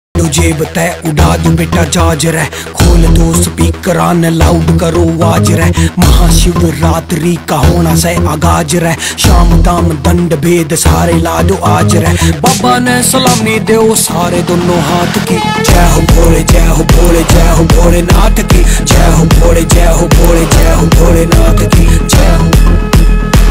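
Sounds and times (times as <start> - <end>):
Haryanvi ringtone music: 0.2 - 23.4.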